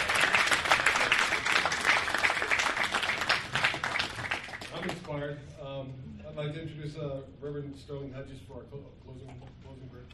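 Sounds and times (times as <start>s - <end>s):
audience applause: 0.0s - 5.1s
speech: 6.6s - 10.1s.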